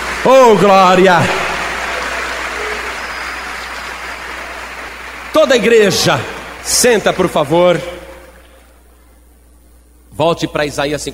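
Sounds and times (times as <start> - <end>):
crowd clapping: 0.0 - 8.7
speech: 0.2 - 1.4, 5.4 - 8.0, 10.2 - 11.1.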